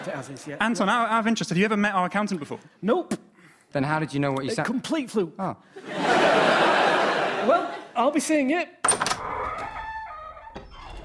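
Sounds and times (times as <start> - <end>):
laughter: 0.0 - 1.0, 5.7 - 8.0
speech: 0.0 - 9.1
voice imitating a creaking door: 8.9 - 11.0.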